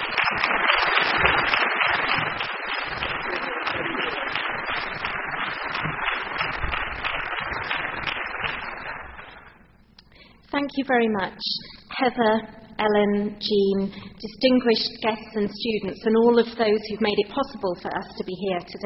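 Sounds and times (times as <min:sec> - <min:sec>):
audience applause welcoming a guest speaker at a formal event: 0:00.0 - 0:09.6
speech: 0:10.8 - 0:18.8.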